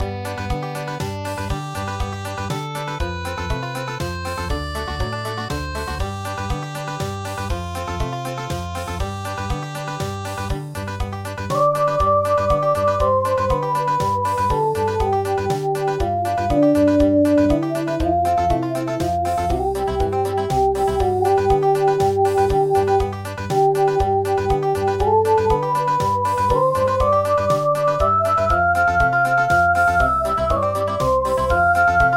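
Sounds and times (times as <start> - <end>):
country music: 0.0 - 32.1.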